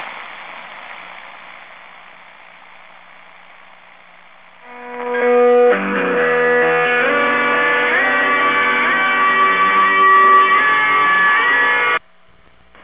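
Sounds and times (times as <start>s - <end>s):
music: 4.6s - 12.0s.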